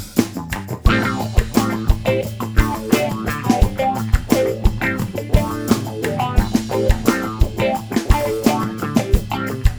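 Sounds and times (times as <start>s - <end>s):
funky rave music: 0.3s - 9.7s.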